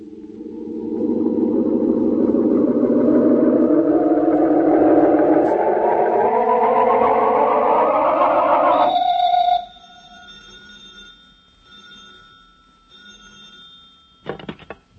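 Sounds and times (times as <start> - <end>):
low hum: 0.0 - 12.9
telephone bell ringing: 9.6 - 14.4.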